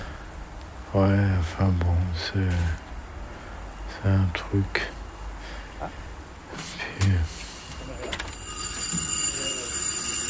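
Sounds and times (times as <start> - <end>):
speech: 0.9 - 2.8, 4.0 - 5.0
stuck alarm clock ringing: 7.5 - 10.2.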